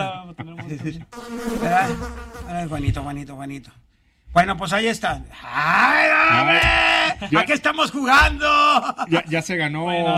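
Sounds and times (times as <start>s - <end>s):
laughter: 0.0s - 2.0s, 6.3s - 7.6s, 8.4s - 9.4s
speech: 0.0s - 10.1s
flies buzzing: 1.1s - 2.8s.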